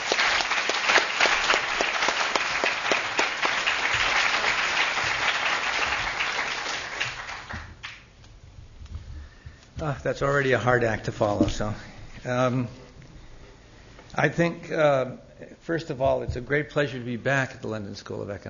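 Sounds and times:
audience applause welcoming a lecturer at a London School of Economics evening lecture: 0.0 - 8.1
speech: 9.8 - 12.8, 14.2 - 18.4.

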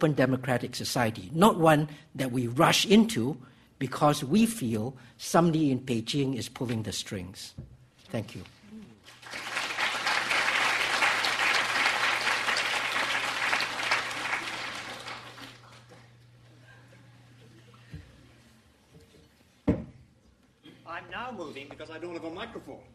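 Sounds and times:
speech: 0.0 - 8.6, 21.3 - 22.9
audience applause: 9.0 - 15.9.

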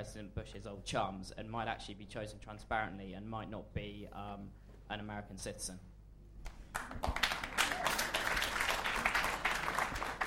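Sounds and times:
speech: 0.0 - 5.9, 6.8 - 7.2
crowd applause: 6.8 - 10.2.

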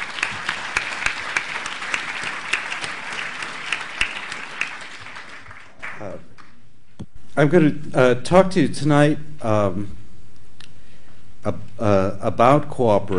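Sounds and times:
audience applause: 0.0 - 6.2
speech: 7.4 - 10.0, 11.4 - 13.1.

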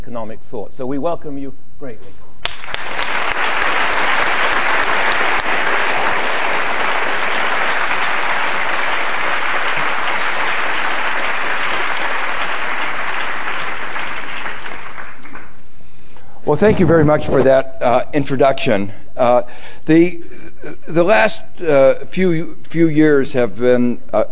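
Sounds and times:
speech: 0.0 - 2.3, 16.5 - 24.3
audience applause at a London School of Economics lecture welcoming an economist: 2.4 - 15.6.

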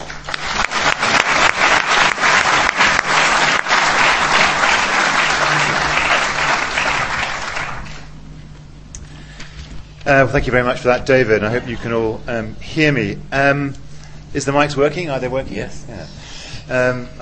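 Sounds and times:
audience applause welcoming a speaker at an evening talk: 0.0 - 8.1
speech: 10.1 - 17.2.

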